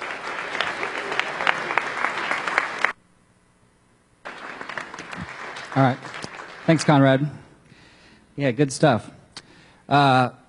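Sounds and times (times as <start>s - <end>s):
audience applause: 0.0s - 3.0s, 4.2s - 7.3s
speech: 5.8s - 6.1s, 6.7s - 7.4s, 8.4s - 9.2s, 9.9s - 10.4s.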